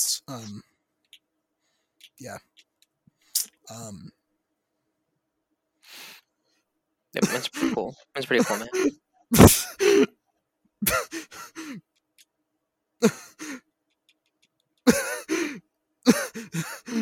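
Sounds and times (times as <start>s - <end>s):
speech: 0.2s - 0.7s, 2.2s - 2.6s, 3.7s - 4.2s, 7.1s - 10.1s, 10.8s - 11.9s, 13.0s - 13.6s, 16.1s - 17.0s
person struggling to breathe: 5.8s - 6.7s, 11.0s - 11.9s, 13.0s - 13.7s, 15.2s - 15.6s, 16.2s - 17.0s.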